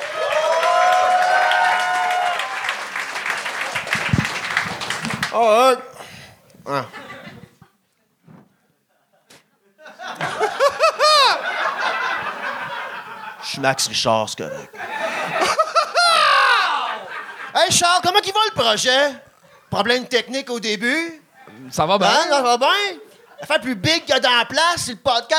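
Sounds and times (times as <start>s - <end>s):
audience applause: 0.0s - 5.4s
speech: 5.4s - 5.9s, 6.7s - 7.0s, 13.6s - 14.8s, 17.7s - 25.3s
laughter: 6.7s - 7.8s, 8.9s - 18.0s.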